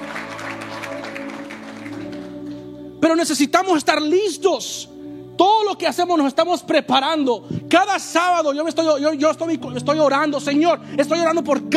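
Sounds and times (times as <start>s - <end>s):
audience applause: 0.0s - 2.6s
sustained organ or keyboard chord: 0.0s - 11.7s
speech: 3.0s - 11.7s.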